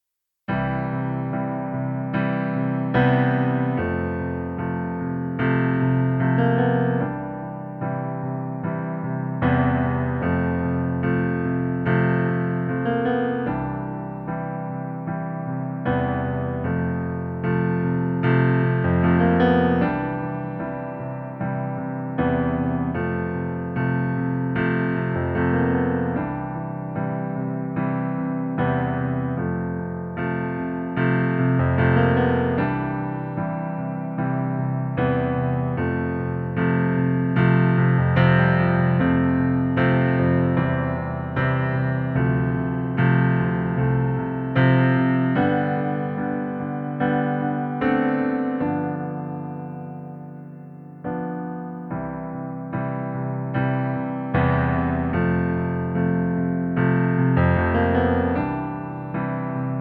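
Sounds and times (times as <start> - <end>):
piano in C major: 0.0 - 59.7.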